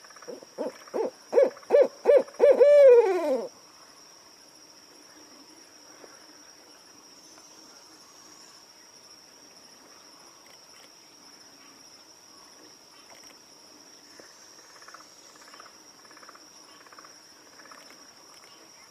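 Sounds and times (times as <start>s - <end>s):
owl hooting: 0.2s - 3.5s.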